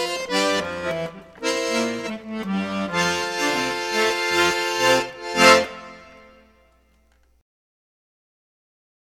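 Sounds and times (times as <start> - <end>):
polka on accordion: 0.0 - 6.7.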